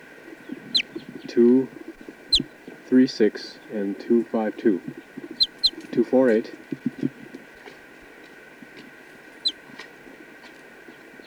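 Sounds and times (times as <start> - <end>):
steady electrical hum: 0.0 - 7.6
faint low rustling: 0.0 - 11.2
bird, likely a chicken, buzzy cluck-like call: 0.4 - 2.6, 4.6 - 6.1
speech: 1.3 - 1.8, 2.9 - 5.0, 6.0 - 6.9
quick high-pitched chirps: 5.4 - 5.8.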